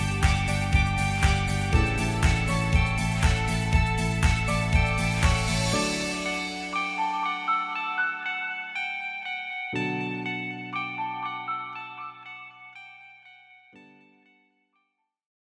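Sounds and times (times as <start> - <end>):
piano: 0.0 - 13.4.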